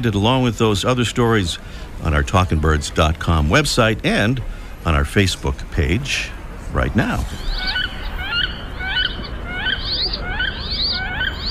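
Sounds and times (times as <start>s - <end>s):
speech: 0.0s - 7.8s
wood duck calls: 7.4s - 11.4s.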